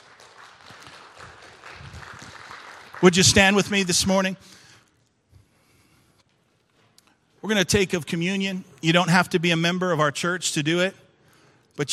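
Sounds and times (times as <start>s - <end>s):
audience applause: 0.0s - 3.9s
speech: 3.0s - 4.6s, 7.5s - 11.0s.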